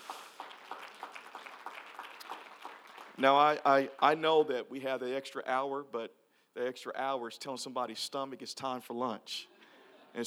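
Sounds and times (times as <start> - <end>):
audience applause: 0.0 - 3.2
speech: 3.2 - 9.5.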